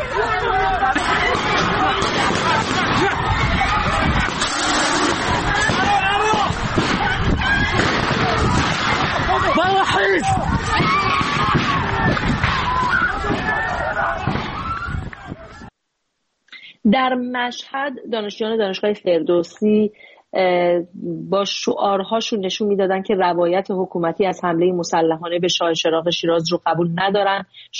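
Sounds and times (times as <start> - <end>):
crowd shouting and screaming during security forces raid: 0.0 - 15.7
sharp bursts of noise: 0.9 - 12.6
speech: 17.0 - 27.7.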